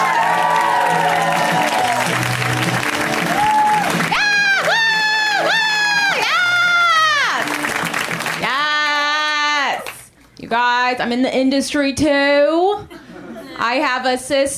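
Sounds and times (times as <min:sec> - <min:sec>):
audience applause: 0:00.0 - 0:10.0
speech: 0:10.9 - 0:12.9, 0:13.6 - 0:14.5.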